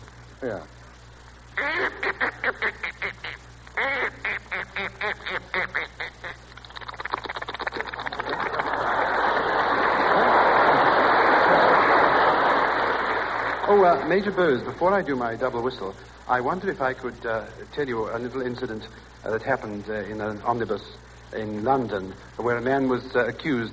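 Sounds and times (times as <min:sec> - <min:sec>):
speech: 0:00.4 - 0:00.8, 0:01.6 - 0:02.8, 0:13.9 - 0:23.7
person imitating a duck: 0:01.6 - 0:08.2
laughter: 0:05.0 - 0:13.8.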